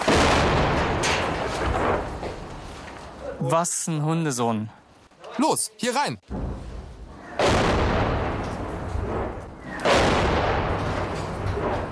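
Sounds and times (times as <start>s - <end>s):
tank cannon shots: 0.0s - 2.2s, 7.4s - 11.9s
speech: 3.4s - 4.8s, 5.4s - 6.4s.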